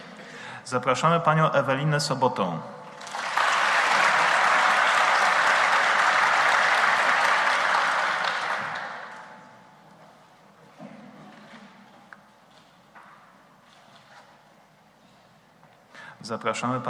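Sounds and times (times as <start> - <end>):
speech: 0.7 - 2.8, 16.4 - 16.8
audience applause: 3.0 - 9.4.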